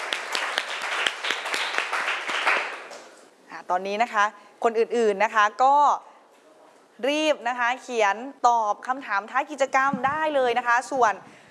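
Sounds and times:
classroom applause: 0.0 - 3.2
speech: 3.7 - 6.1, 7.0 - 11.4.

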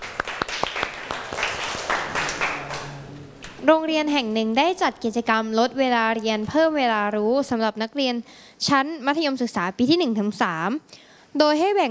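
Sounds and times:
classroom clapping: 0.0 - 3.6
speech: 3.6 - 11.8.

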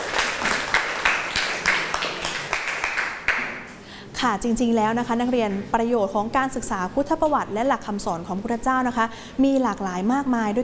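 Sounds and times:
classroom students clapping hands: 0.0 - 3.7
speech: 4.2 - 10.6.

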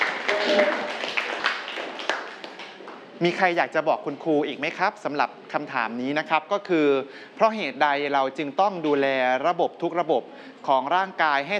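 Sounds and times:
students clapping: 0.0 - 3.0
speech: 3.2 - 11.5.

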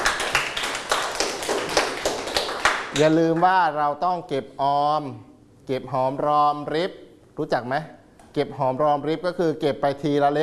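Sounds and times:
classroom applause for a classmate: 0.0 - 3.5
speech: 3.0 - 10.4.

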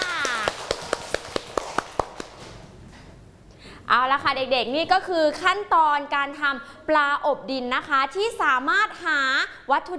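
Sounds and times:
children clapping: 0.0 - 2.6
speech: 3.9 - 9.9.

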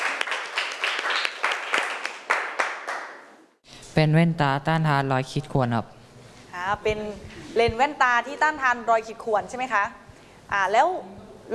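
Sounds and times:
classroom applause: 0.0 - 3.3
speech: 4.0 - 6.0, 6.6 - 11.5.

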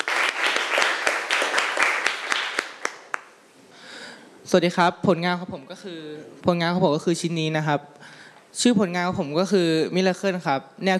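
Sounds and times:
audience applause: 0.0 - 3.3
speech: 4.5 - 10.9.

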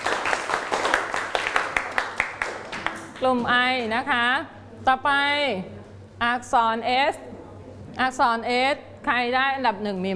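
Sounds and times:
classroom applause: 0.0 - 3.2
speech: 3.2 - 7.3, 8.0 - 10.1.

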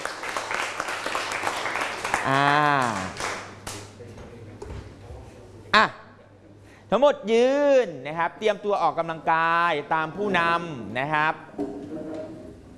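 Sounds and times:
class clapping for a classmate: 0.0 - 3.9
speech: 2.3 - 3.3, 5.8 - 6.0, 6.9 - 11.9.

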